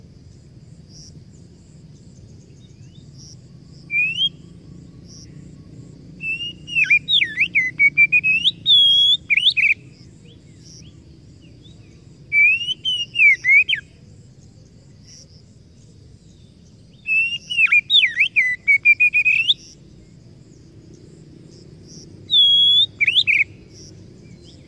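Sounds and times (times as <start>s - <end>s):
Oriental magpie-robin singing: 3.7s - 5.5s, 6.2s - 10.9s, 11.6s - 13.9s, 16.3s - 19.8s, 21.9s - 24.6s.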